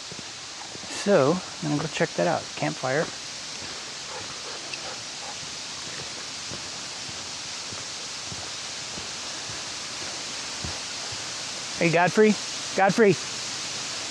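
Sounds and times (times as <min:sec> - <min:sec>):
distant waterfall: 0:00.0 - 0:14.0
speech: 0:01.0 - 0:03.2, 0:11.8 - 0:13.4
soft irregular low thumps: 0:04.1 - 0:11.4.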